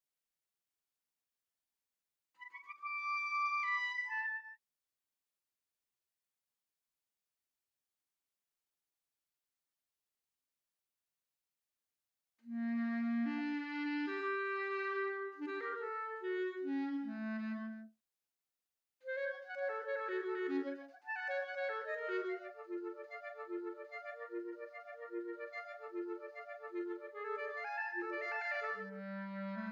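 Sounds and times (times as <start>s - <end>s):
clarinet: 2.4s - 4.6s, 12.4s - 17.9s, 19.0s - 29.7s.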